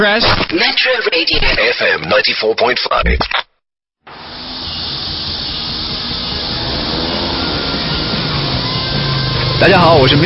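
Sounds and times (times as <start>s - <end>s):
speech: 0.0s - 3.5s, 9.6s - 10.2s
motorcycle engine cylinder blowing: 4.0s - 10.2s
hissing steam: 4.1s - 9.4s.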